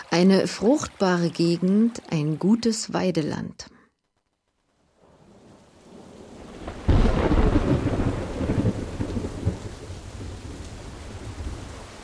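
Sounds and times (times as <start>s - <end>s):
speech: 0.2s - 3.8s
thunderstorm with heavy rain: 5.0s - 12.0s.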